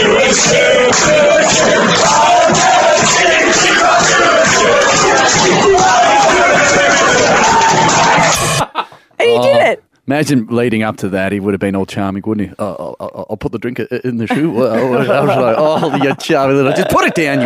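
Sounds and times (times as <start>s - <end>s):
pub crowd chanting in unison: 0.0s - 8.6s
laughter: 8.2s - 9.0s, 14.2s - 17.4s
speech: 10.1s - 17.4s.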